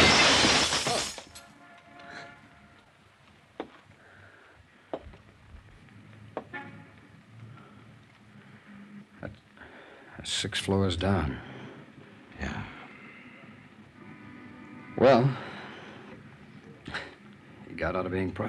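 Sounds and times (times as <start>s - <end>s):
window glass shattering: 0.0s - 1.4s
speech: 10.2s - 11.5s, 15.0s - 15.4s, 17.9s - 18.4s.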